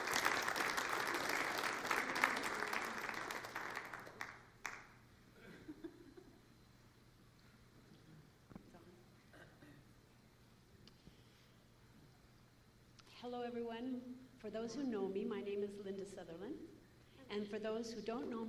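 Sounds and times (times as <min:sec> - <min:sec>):
audience applause welcoming a speaker to the stage: 0:00.0 - 0:04.9
speech: 0:13.2 - 0:18.4.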